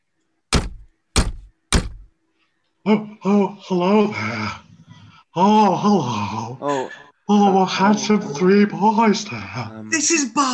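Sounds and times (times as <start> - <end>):
knocking on a door: 0.5 - 2.1
speech: 2.8 - 4.6, 5.4 - 10.5.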